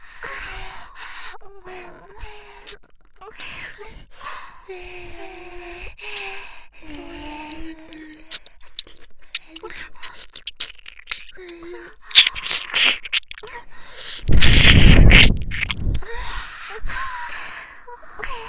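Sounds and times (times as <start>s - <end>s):
ear licking sounds on left and right: 6.9s - 16.2s.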